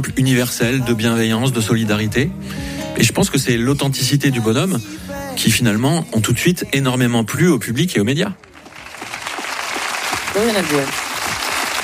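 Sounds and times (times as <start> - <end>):
speech: 0.0 - 8.6, 10.4 - 11.1
audience applause: 8.4 - 11.8.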